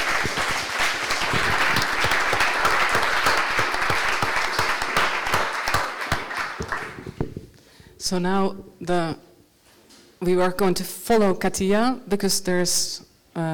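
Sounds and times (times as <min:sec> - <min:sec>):
audience applause: 0:00.0 - 0:07.4
speech: 0:08.1 - 0:09.3, 0:10.2 - 0:13.5.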